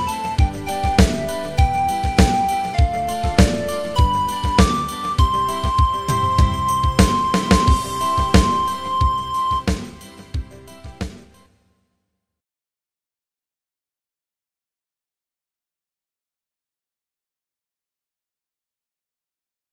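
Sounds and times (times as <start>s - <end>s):
music beat: 0.0s - 11.4s.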